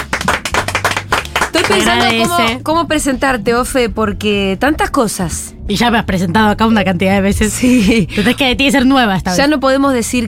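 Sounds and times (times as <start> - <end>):
audience applause: 0.0 - 2.6
speech: 1.7 - 10.2.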